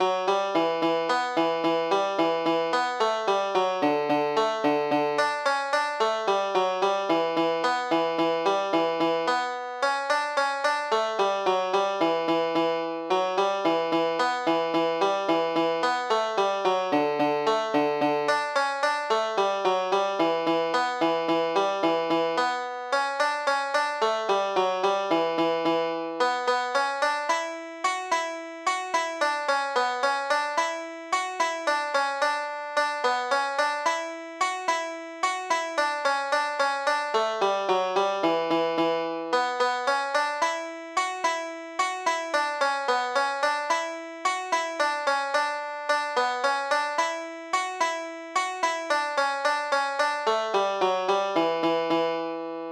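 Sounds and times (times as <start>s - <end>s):
banjo jig: 0.3s - 52.3s.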